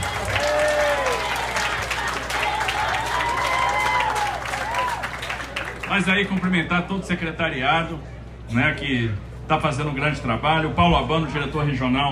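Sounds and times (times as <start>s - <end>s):
scattered cheers and whoops: 0.0s - 5.6s
crowd applause: 0.0s - 6.7s
speech: 6.0s - 12.1s.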